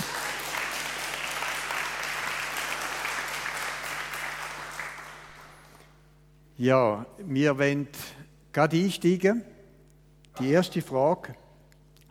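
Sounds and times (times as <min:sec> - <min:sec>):
audience applause: 0:00.0 - 0:05.8
speech: 0:06.6 - 0:09.5, 0:10.4 - 0:11.4.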